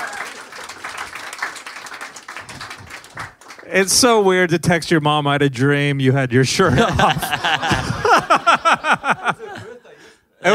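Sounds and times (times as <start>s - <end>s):
live audience applause: 0.0s - 3.8s
speech: 3.7s - 7.9s
laughter: 6.6s - 10.5s.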